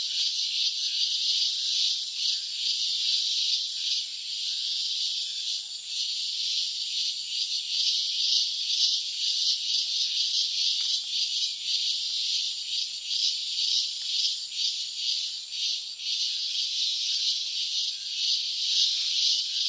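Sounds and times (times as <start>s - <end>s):
night chorus of crickets: 0.0s - 19.6s.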